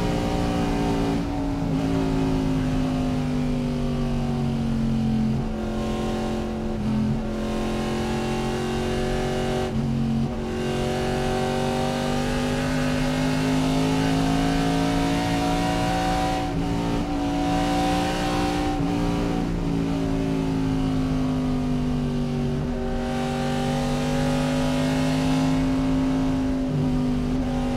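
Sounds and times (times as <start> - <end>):
NASCAR race car driving at fast speed: 0.0 - 27.7.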